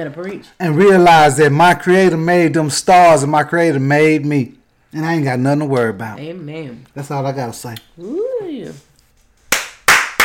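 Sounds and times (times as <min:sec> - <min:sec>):
speech: 0:00.0 - 0:08.8
person clapping hands: 0:09.5 - 0:10.2.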